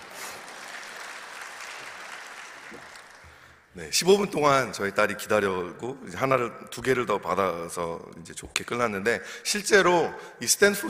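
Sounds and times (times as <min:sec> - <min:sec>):
crowd clapping: 0:00.0 - 0:03.7
speech: 0:02.7 - 0:02.9, 0:03.8 - 0:10.8.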